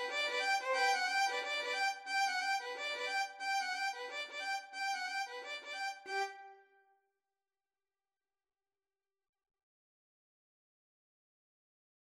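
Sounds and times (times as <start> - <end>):
violin duet: 0.0 - 6.3.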